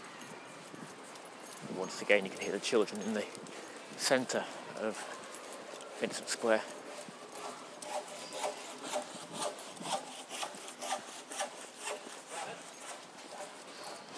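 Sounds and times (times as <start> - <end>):
speech: 1.8 - 5.2, 6.0 - 6.8
saw cutting through wood in carpentry work: 6.1 - 14.0.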